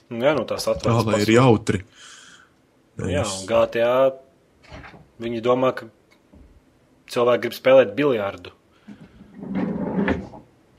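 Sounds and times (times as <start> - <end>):
speech: 0.1 - 2.2, 3.0 - 6.0, 7.1 - 9.6
drawer closing: 9.2 - 10.5.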